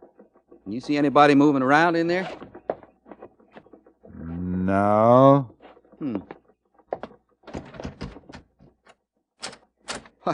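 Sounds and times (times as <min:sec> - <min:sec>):
speech: 0:00.7 - 0:02.5, 0:04.7 - 0:06.4
Blue Star door being opened: 0:07.5 - 0:08.8.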